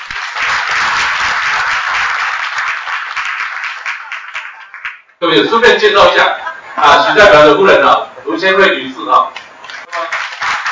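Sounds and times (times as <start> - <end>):
audience applause welcoming a speaker: 0.0 - 5.1, 9.6 - 10.7
speech: 5.2 - 9.4.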